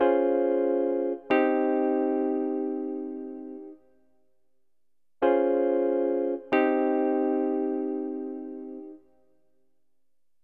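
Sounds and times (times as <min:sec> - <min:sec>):
hip hop and RnB piano in A flat: 0:00.0 - 0:03.8, 0:05.2 - 0:09.0.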